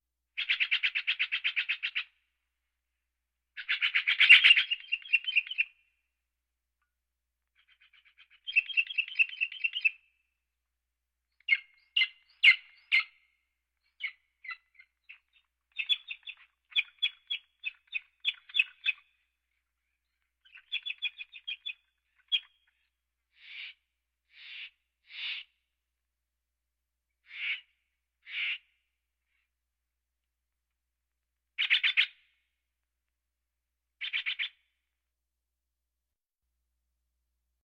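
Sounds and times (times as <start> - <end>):
birds: 0.4 - 2.3, 3.6 - 6.0, 7.4 - 10.4, 11.3 - 25.6, 27.2 - 29.5, 31.6 - 32.4, 34.0 - 34.8.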